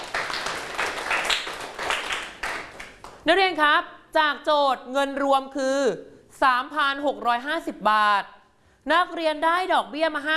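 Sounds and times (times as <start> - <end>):
group of students clapping in a classroom: 0.0 - 3.2
speech: 3.2 - 10.3.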